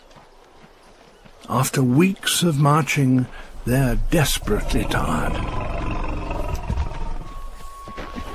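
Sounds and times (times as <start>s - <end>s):
speech: 1.5s - 5.8s
elephant herd calling: 4.2s - 7.2s.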